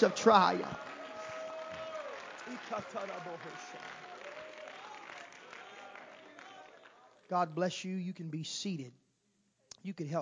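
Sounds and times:
speech: 0:00.0 - 0:00.8, 0:02.5 - 0:04.0, 0:07.3 - 0:09.0, 0:09.8 - 0:10.1
audience clapping hands: 0:00.0 - 0:07.6.

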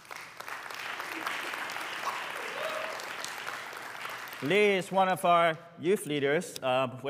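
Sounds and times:
audience applause: 0:00.0 - 0:04.8
speech: 0:04.4 - 0:07.0.

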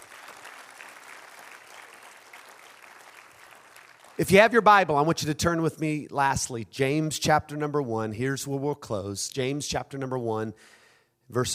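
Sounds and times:
people clapping their hands: 0:00.0 - 0:04.6
speech: 0:04.2 - 0:11.5.

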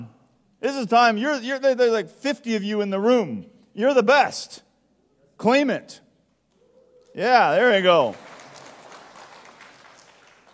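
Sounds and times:
speech: 0:00.6 - 0:04.6, 0:05.4 - 0:06.0, 0:07.2 - 0:08.3
small audience polite golf clap: 0:07.5 - 0:10.5.

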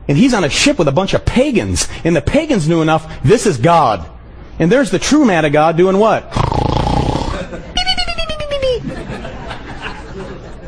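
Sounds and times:
speech: 0:00.1 - 0:06.4
exaggerated comic snore imitation: 0:06.3 - 0:07.5
laughter: 0:07.3 - 0:10.6.

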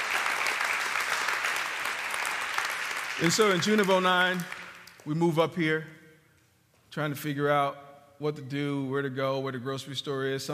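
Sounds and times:
audience applause: 0:00.0 - 0:05.0
speech: 0:03.2 - 0:06.0, 0:06.9 - 0:10.5.

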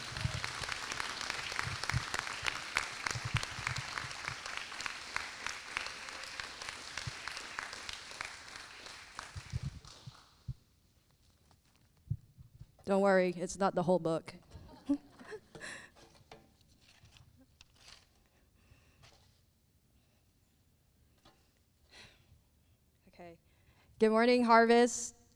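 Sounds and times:
audience applause: 0:00.0 - 0:10.3
speech: 0:12.9 - 0:15.0, 0:24.0 - 0:25.2
laughter: 0:14.5 - 0:15.8.

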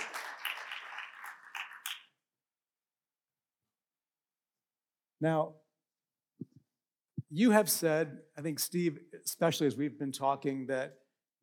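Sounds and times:
audience applause: 0:00.0 - 0:02.1
speech: 0:05.2 - 0:05.6, 0:07.3 - 0:11.4.

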